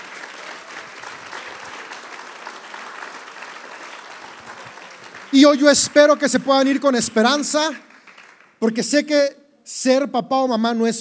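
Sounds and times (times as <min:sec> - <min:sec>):
audience applause: 0:00.0 - 0:08.6
speech: 0:05.3 - 0:07.9, 0:08.6 - 0:10.9.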